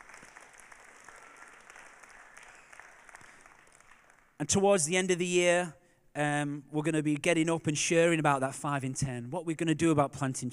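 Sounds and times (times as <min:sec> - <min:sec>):
audience round of applause: 0:00.0 - 0:04.4
speech: 0:04.4 - 0:10.5.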